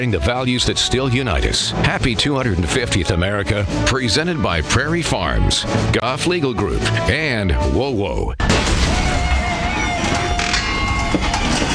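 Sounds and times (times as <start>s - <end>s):
speech: 0.0s - 8.7s
faulty garage door crashing and banging: 8.4s - 11.7s.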